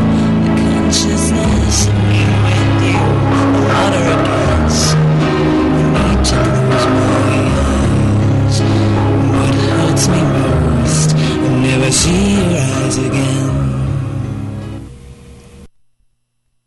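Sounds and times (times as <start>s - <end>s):
piano song recorded in the 1980s: 0.0s - 15.1s.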